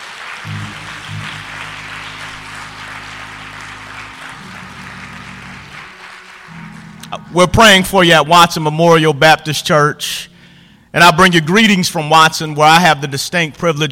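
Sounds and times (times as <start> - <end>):
audience applause: 0.0 - 7.6
speech: 7.1 - 10.3, 10.9 - 13.9.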